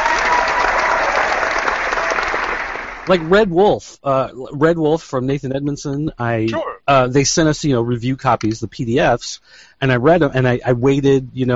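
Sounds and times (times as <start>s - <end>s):
crowd applause: 0.0s - 3.4s
speech: 3.1s - 11.5s.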